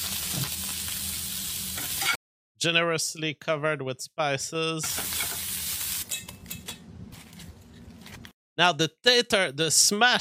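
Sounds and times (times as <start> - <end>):
roast beef searing in a pan: 0.0 - 2.2, 4.9 - 6.1
speech: 2.6 - 5.2, 8.6 - 10.2.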